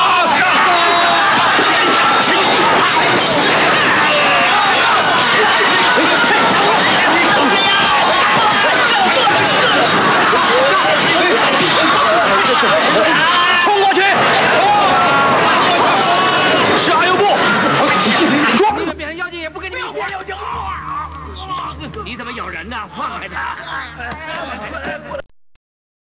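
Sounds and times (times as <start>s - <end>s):
fight sounds: 0.0s - 19.0s
laughter: 0.0s - 25.2s.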